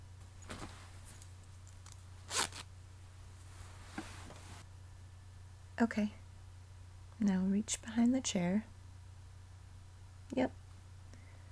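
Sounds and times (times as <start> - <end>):
clothing rustling: 0.2 - 2.7, 3.4 - 4.7
pants zipper being unzipped: 2.3 - 2.6
speech: 5.8 - 6.2, 7.2 - 8.7, 10.3 - 10.6.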